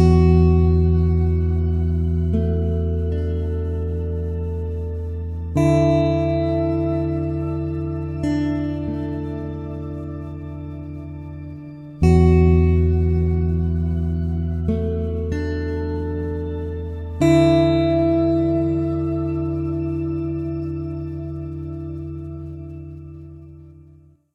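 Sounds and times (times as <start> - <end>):
slow ambient guitar theme: 0.0 - 24.3.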